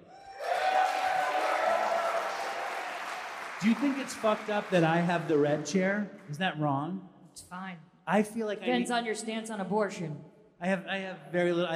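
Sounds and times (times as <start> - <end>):
crowd cheering: 0.0 - 6.3
audience applause: 0.3 - 6.0
speech: 3.6 - 11.7.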